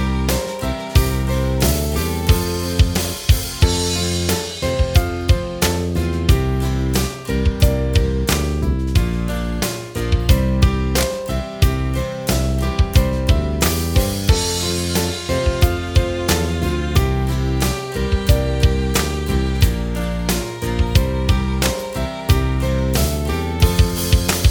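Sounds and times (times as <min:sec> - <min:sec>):
instrumental music: 0:00.0 - 0:24.5.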